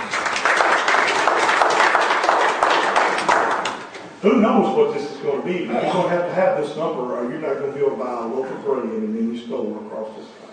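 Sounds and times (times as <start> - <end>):
audience clapping: 0.0 - 4.0
speech: 4.2 - 10.4.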